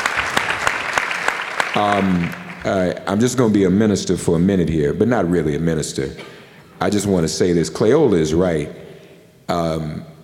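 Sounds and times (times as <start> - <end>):
audience applause: 0.0 - 3.0
speech: 1.8 - 8.9, 9.5 - 10.1.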